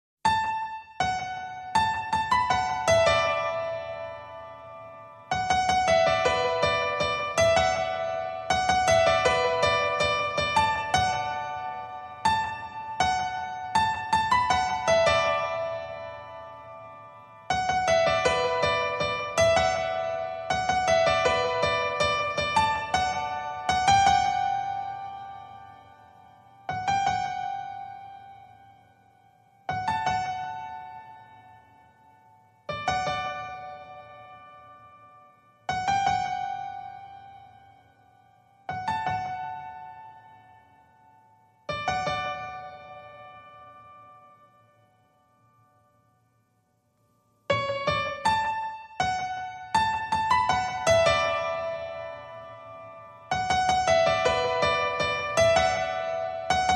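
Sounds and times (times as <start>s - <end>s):
solo piano: 0.2s - 56.7s.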